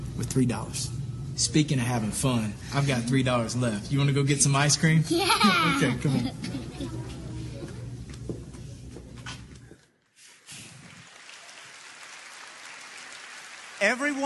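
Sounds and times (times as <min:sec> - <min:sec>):
speech: 0:00.2 - 0:07.0, 0:13.8 - 0:14.2
laughter: 0:05.0 - 0:07.4
low murmuring voices: 0:05.6 - 0:09.5
audience clapping: 0:10.7 - 0:14.2.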